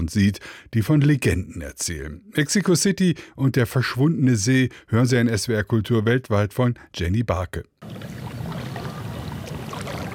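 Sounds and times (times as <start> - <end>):
speech: 0.0 - 8.2
kayak paddle dipping into water: 7.8 - 10.1.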